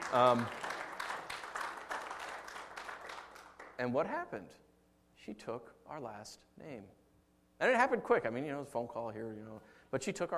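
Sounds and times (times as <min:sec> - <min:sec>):
audience applause: 0:00.0 - 0:03.8
speech: 0:00.1 - 0:00.6, 0:03.8 - 0:04.6, 0:05.2 - 0:07.0, 0:07.6 - 0:10.3.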